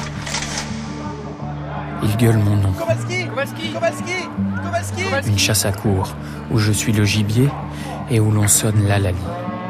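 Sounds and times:
camera flashes crackling: 0.0 - 0.9
speech: 2.0 - 9.5.

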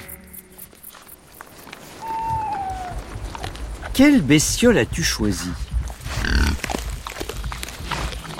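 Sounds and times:
branches crackling: 0.7 - 4.7, 5.6 - 8.3
speech: 4.0 - 5.6
wild boar grunting and breathing: 6.0 - 8.3.

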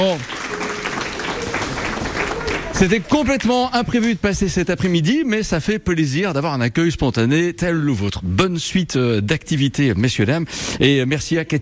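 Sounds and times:
speech: 0.0 - 0.6, 2.8 - 11.6
audience applause: 0.0 - 3.8.

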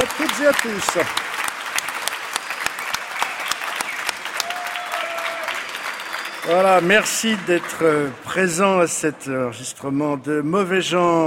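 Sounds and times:
audience applause: 0.0 - 9.0
speech: 0.1 - 1.3, 6.4 - 11.2.

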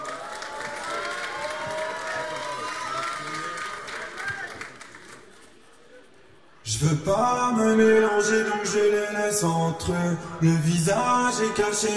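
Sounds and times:
audience applause and cheering: 0.0 - 5.3
speech: 6.8 - 11.9.

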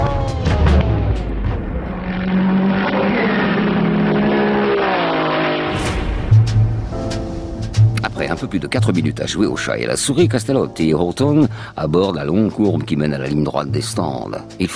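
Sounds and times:
Ferrari race car engine at full throttle: 0.0 - 8.1
speech: 8.5 - 14.7.

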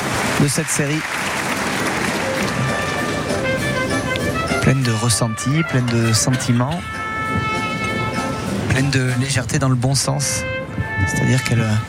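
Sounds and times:
bullring audience applauding: 0.0 - 4.3
speech: 0.4 - 1.4, 4.6 - 7.5, 8.8 - 11.8.

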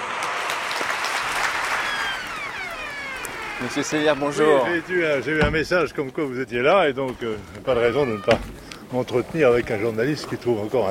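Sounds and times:
audience applause: 0.0 - 5.4
speech: 3.6 - 10.8.

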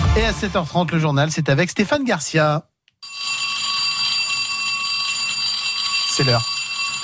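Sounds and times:
speech: 0.2 - 2.7, 6.2 - 7.0
school bell ringing: 3.0 - 7.0.

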